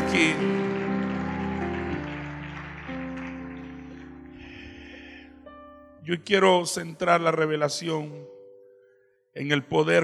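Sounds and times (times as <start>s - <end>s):
audience applauding: 0.0s - 5.2s
speech: 0.1s - 0.7s, 6.1s - 8.3s, 9.4s - 10.0s.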